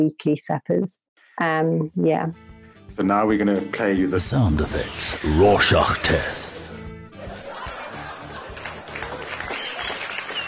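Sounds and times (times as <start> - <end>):
speech: 0.0 - 6.5
theatre audience applause at the Civic Theatre after a comedy set: 4.6 - 6.5, 7.3 - 10.4
theatre audience laughing: 4.8 - 10.4.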